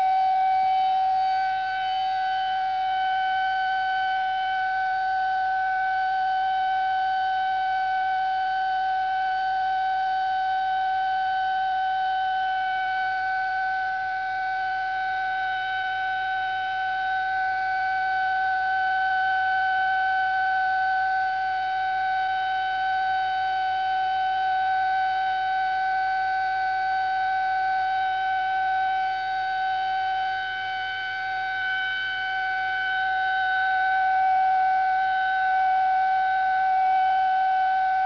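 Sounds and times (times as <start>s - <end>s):
siren: 0.0s - 38.0s.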